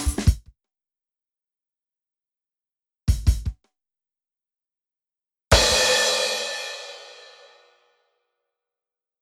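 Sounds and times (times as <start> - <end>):
drums: 0.0 - 0.5, 3.1 - 3.7, 5.5 - 7.6.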